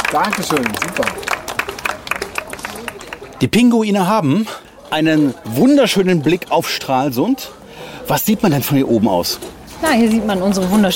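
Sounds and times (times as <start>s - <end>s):
crowd applauding: 0.0s - 3.6s
speech: 0.1s - 1.7s, 3.4s - 10.9s
faint murmur of voices: 0.4s - 10.9s.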